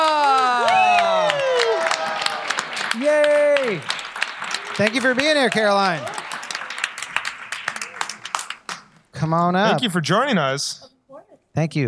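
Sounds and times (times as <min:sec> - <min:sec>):
loud whoops: 0:00.0 - 0:03.9
audience cheering and applauding at the Bell House in Brooklyn: 0:00.0 - 0:09.0
speech: 0:04.8 - 0:06.2, 0:09.2 - 0:10.9, 0:11.6 - 0:11.8.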